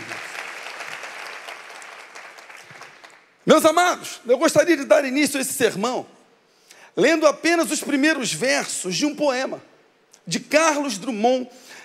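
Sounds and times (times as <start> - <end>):
audience applause: 0.0 - 3.3
speech: 3.4 - 6.2, 7.0 - 9.7, 10.3 - 11.8.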